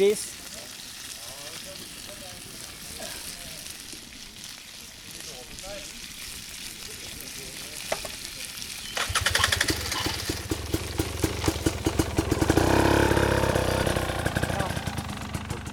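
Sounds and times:
pork sizzling in a frying pan: 0:00.0 - 0:15.7
faint murmuring voices: 0:00.3 - 0:08.8.

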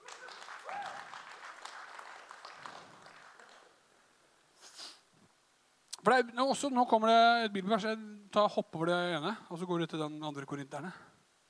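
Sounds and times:
audience applause: 0:00.0 - 0:04.1
breathy sniff: 0:04.6 - 0:05.1
speech: 0:06.0 - 0:11.1.

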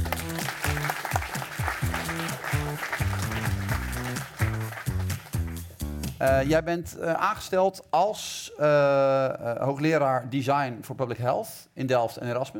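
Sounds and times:
audience applause welcoming a guest onto a Dutch talk show: 0:00.0 - 0:05.8
upbeat music track with a bouncing bass line: 0:00.0 - 0:06.7
speech: 0:06.2 - 0:12.5.

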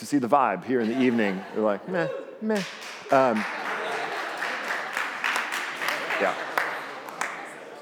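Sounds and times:
speech: 0:00.0 - 0:03.6, 0:06.2 - 0:06.5
laughter: 0:00.7 - 0:07.8
audience clapping half-heartedly: 0:02.5 - 0:07.8.

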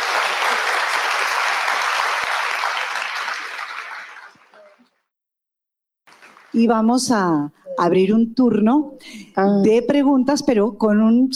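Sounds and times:
audience applause: 0:00.0 - 0:04.9, 0:06.1 - 0:06.6
speech: 0:06.6 - 0:11.3.

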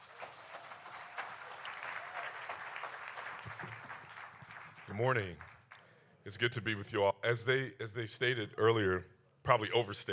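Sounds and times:
audience applause welcoming a preacher at a church service: 0:00.0 - 0:05.6
speech: 0:05.0 - 0:05.5, 0:06.3 - 0:10.1.

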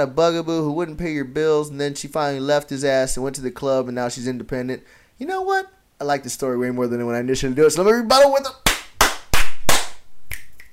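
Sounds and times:
speech: 0:00.0 - 0:08.7
hand claps: 0:08.6 - 0:10.7
finger snaps: 0:10.3 - 0:10.7.

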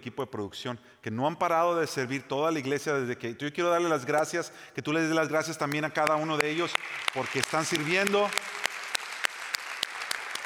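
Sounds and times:
speech: 0:00.0 - 0:08.5
sharp evenly spaced louder claps: 0:05.6 - 0:10.4
audience applause: 0:06.0 - 0:10.4.

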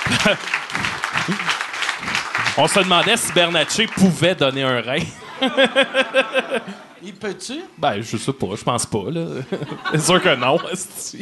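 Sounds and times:
laughter: 0:00.0 - 0:03.8, 0:05.0 - 0:07.0, 0:09.3 - 0:11.1
applause: 0:00.0 - 0:04.9
speech: 0:00.1 - 0:11.1.

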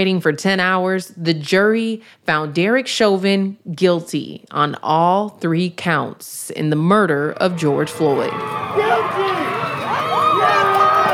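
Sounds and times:
speech: 0:00.0 - 0:09.4
crowd cheering: 0:07.3 - 0:11.1.

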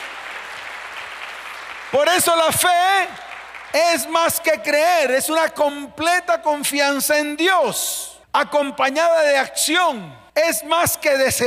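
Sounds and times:
audience applauding: 0:00.0 - 0:04.2
speech: 0:01.9 - 0:11.4.

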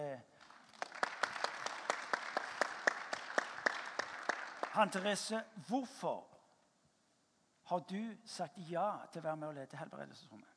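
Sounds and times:
people applauding: 0:00.4 - 0:05.3
speech: 0:04.8 - 0:06.3, 0:07.7 - 0:10.5.

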